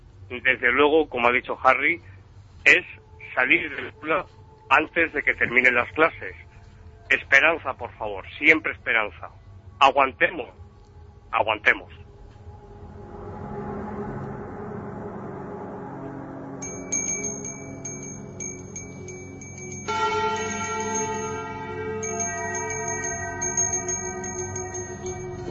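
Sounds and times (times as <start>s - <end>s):
speech: 0.3s - 6.4s, 7.1s - 10.6s, 11.3s - 12.0s
small handbell ringing: 16.6s - 25.4s.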